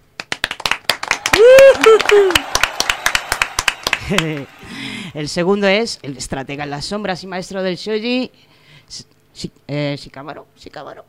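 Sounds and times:
rhythmic clapping on a Spanish studio radio show: 0:00.0 - 0:04.8
speech: 0:01.9 - 0:02.5, 0:04.1 - 0:11.0.

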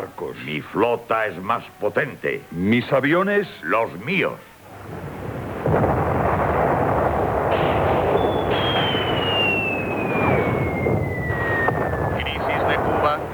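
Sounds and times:
speech: 0:00.2 - 0:05.0
guided rockets launching and exploding: 0:04.6 - 0:13.3
thin whistling tone sliding downward: 0:07.6 - 0:13.2.

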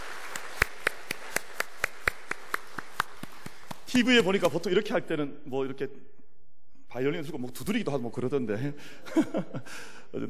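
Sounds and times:
audience applause: 0:00.0 - 0:03.9
speech: 0:03.9 - 0:06.2, 0:06.9 - 0:10.2
laughter: 0:09.0 - 0:10.2.

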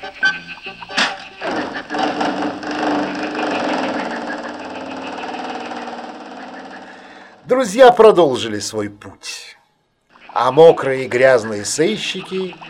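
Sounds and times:
car engine starting and driving off: 0:01.6 - 0:07.2
speech: 0:07.5 - 0:09.4, 0:10.4 - 0:12.6.

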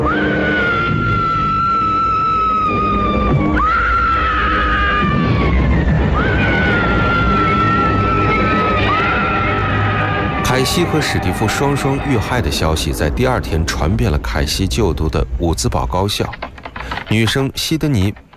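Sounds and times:
parents screaming in horror: 0:00.0 - 0:13.8
speech: 0:10.8 - 0:16.4, 0:17.1 - 0:18.2.

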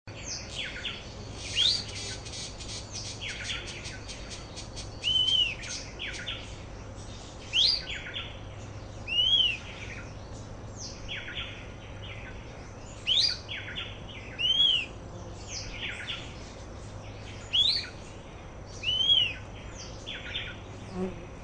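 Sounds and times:
fuscous flycatcher Cnemotriccus fuscatus fuscatior singing: 0:00.6 - 0:06.4, 0:07.5 - 0:08.1, 0:09.0 - 0:10.1, 0:13.0 - 0:13.4, 0:14.3 - 0:15.0, 0:17.4 - 0:18.0, 0:18.8 - 0:19.5.

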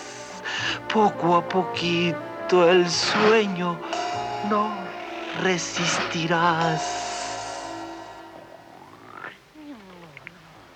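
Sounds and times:
speech: 0:00.9 - 0:04.8, 0:05.4 - 0:07.0
snoring: 0:03.2 - 0:10.7.

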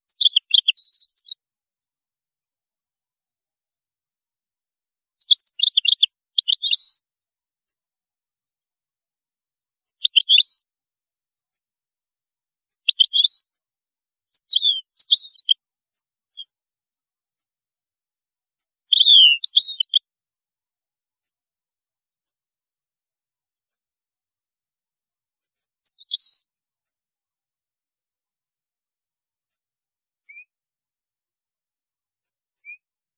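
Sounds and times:
European goldfinch twittering song: 0:00.0 - 0:01.4, 0:05.2 - 0:07.0, 0:10.0 - 0:10.6, 0:12.9 - 0:13.5, 0:14.3 - 0:15.6, 0:18.8 - 0:20.0, 0:25.6 - 0:26.5.

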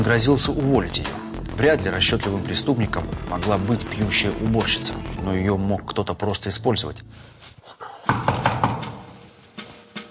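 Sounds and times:
speech: 0:00.0 - 0:07.3
knocking on a door: 0:08.1 - 0:09.0.

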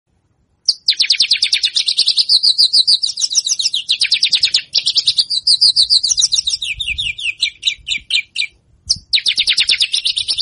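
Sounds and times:
Javan bush lark song: 0:00.1 - 0:10.4.

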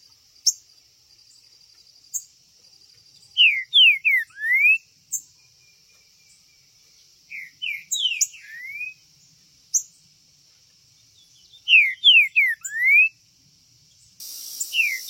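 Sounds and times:
green-winged saltator whistling song: 0:03.4 - 0:04.9, 0:07.3 - 0:09.0, 0:11.6 - 0:13.2, 0:14.2 - 0:15.0.

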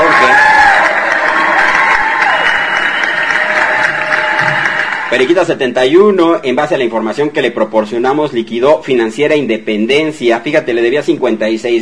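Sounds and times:
crowd clapping applause sound effect: 0:00.0 - 0:05.5
speech: 0:05.2 - 0:11.8.

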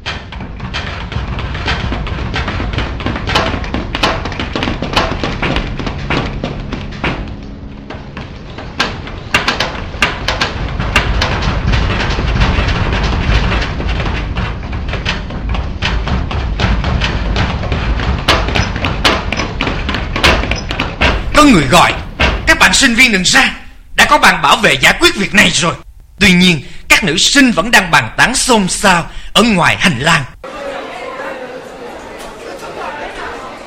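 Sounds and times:
footsteps running down the stairs: 0:00.0 - 0:25.5
speech: 0:21.4 - 0:22.0, 0:22.7 - 0:30.3.

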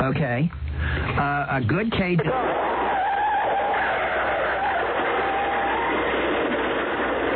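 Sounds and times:
speech: 0:00.0 - 0:02.8
car skidding: 0:02.3 - 0:07.3.

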